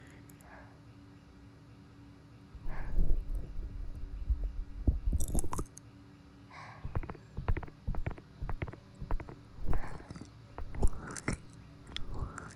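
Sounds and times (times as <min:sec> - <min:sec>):
ASMR ear cleaning and ear pressure point massage in right ear: 0:02.6 - 0:05.7, 0:06.9 - 0:12.5.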